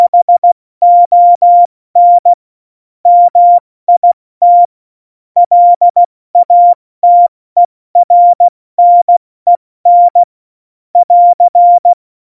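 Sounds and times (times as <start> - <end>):
CW Morse code beeps: 0.0 - 2.3, 3.1 - 4.7, 5.4 - 7.3, 8.0 - 10.3, 11.0 - 12.0.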